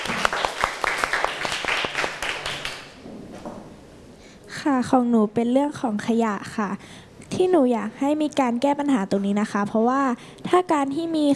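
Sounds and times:
classroom applause: 0:00.0 - 0:03.0
speech: 0:04.6 - 0:11.3.

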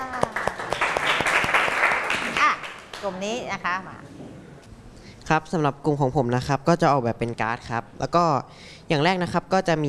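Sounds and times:
classmates clapping after a presentation: 0:00.0 - 0:03.3
speech: 0:03.0 - 0:04.2, 0:05.3 - 0:09.8.

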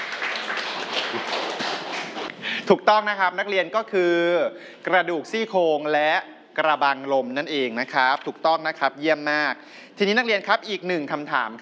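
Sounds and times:
classroom of students clapping: 0:00.0 - 0:02.5
speech: 0:02.7 - 0:11.6.

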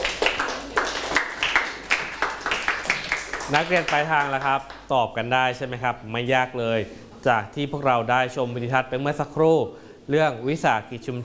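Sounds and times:
students clapping for a classmate: 0:00.0 - 0:04.9
speech: 0:03.5 - 0:11.2.

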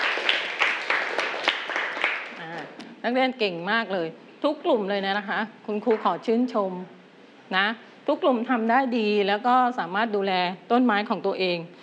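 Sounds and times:
students in a classroom clapping for group three: 0:00.0 - 0:02.7
speech: 0:03.0 - 0:11.8.

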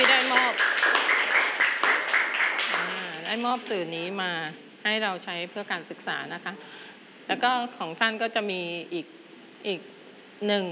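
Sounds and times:
students in a classroom clapping in thanks: 0:00.0 - 0:03.7
speech: 0:03.3 - 0:10.6.

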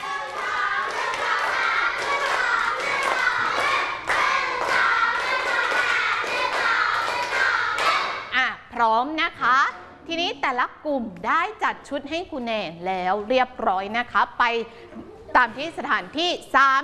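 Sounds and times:
hand clapping: 0:00.0 - 0:08.3
speech: 0:08.8 - 0:16.8.

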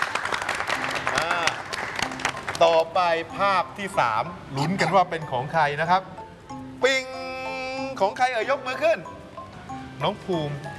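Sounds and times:
children applauding in class: 0:00.0 - 0:02.9
speech: 0:02.6 - 0:06.2, 0:06.8 - 0:07.1, 0:08.0 - 0:09.1, 0:10.0 - 0:10.7.

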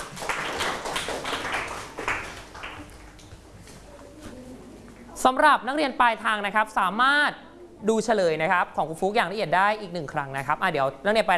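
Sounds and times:
students clapping: 0:00.0 - 0:03.5
speech: 0:05.2 - 0:11.3.

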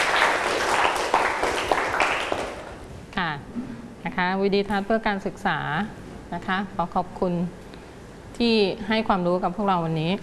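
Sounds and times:
students clapping: 0:00.0 - 0:02.8
speech: 0:03.2 - 0:07.6, 0:08.4 - 0:10.2.

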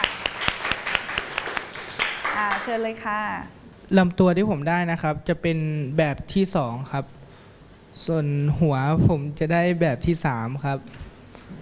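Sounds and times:
group of students clapping in a steady even rhythm: 0:00.0 - 0:02.9
speech: 0:02.6 - 0:07.2, 0:08.0 - 0:11.0.

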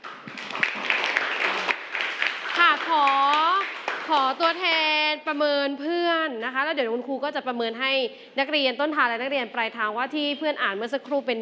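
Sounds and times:
classroom applause: 0:00.0 - 0:04.8
speech: 0:04.1 - 0:11.4.

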